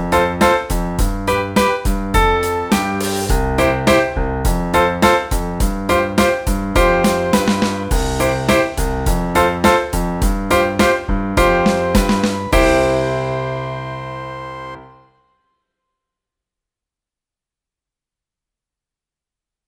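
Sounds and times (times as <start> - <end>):
rock music: 0.1 - 14.7.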